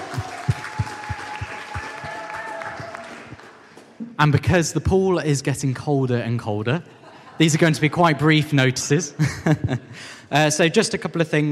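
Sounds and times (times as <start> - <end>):
audience applause: 0.0 - 3.9
speech: 4.2 - 11.5
laughter: 6.9 - 10.0.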